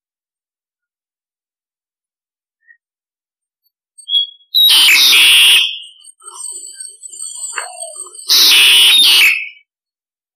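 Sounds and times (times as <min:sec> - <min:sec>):
starling harsh call with whistle, rasping screech and chattering: 0:04.6 - 0:09.6.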